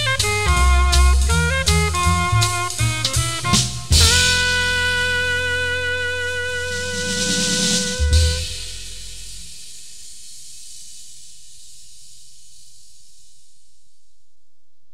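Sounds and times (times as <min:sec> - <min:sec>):
blues groove: 0:00.0 - 0:08.8.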